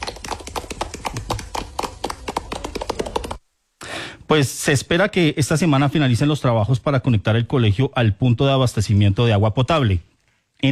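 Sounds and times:
students applauding: 0.0 - 3.4
speech: 4.3 - 10.6.

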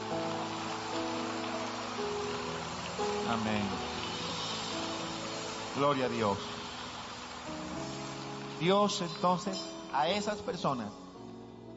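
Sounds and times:
audience applauding: 0.0 - 10.5
speech: 3.3 - 3.8, 5.8 - 6.5, 8.6 - 11.0.

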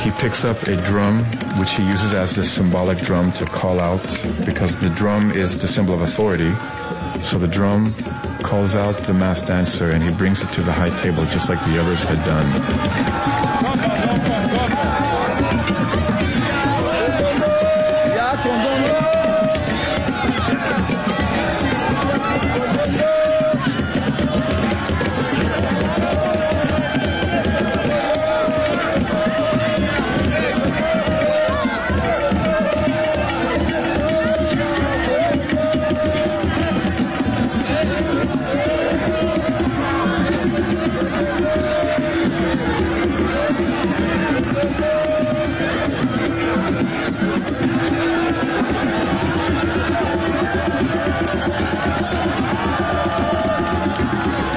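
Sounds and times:
speech: 0.0 - 15.4
crowd cheering wildly: 0.0 - 54.5.

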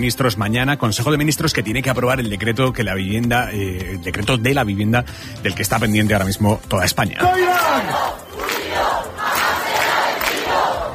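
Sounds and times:
speech: 0.0 - 8.2
campers chanting in the Puerta del Sol: 7.6 - 10.9.

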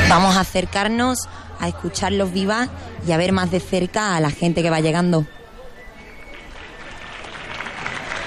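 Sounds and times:
speech: 0.1 - 5.4
applause: 6.2 - 8.2.

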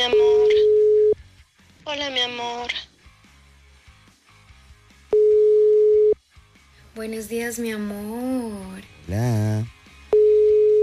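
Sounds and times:
telephone tone on a call attempt: 0.0 - 1.2, 5.1 - 6.2, 10.1 - 10.8
speech: 7.0 - 9.8.

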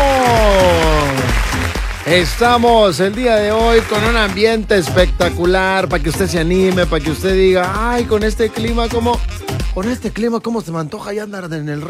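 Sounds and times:
audience applause: 0.0 - 2.8, 3.5 - 4.4
speech: 2.1 - 11.8.

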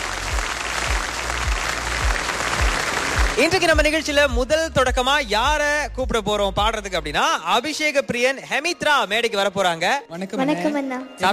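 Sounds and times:
loud audience applause opening a stage show: 0.0 - 4.1
speech: 3.4 - 11.3.

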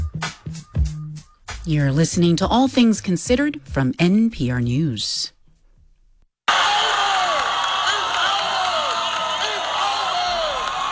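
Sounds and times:
speech: 1.6 - 5.4
ACU students cheering at the Dunkman World Championship in Moody: 6.5 - 10.9
clapping: 6.5 - 10.9
whoops: 6.5 - 10.9.

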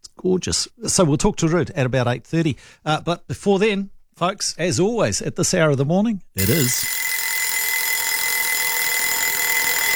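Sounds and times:
speech: 0.2 - 7.1
small alarm clock ringing: 6.4 - 9.9.

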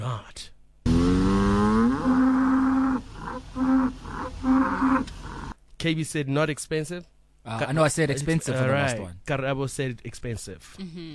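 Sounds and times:
cow mooing: 0.9 - 5.6
speech: 5.8 - 11.1.

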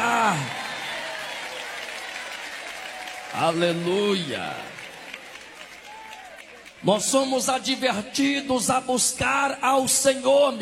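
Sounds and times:
audience applauding: 0.0 - 7.6
speech: 3.3 - 4.8, 6.8 - 10.6.

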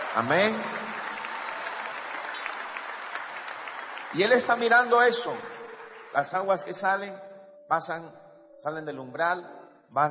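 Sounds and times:
audience clapping: 0.0 - 7.0
speech: 0.2 - 0.9, 4.1 - 10.1.

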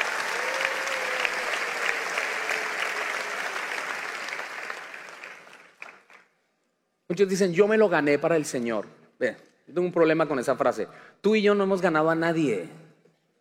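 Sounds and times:
audience applause: 0.0 - 6.2
speech: 7.1 - 12.8.

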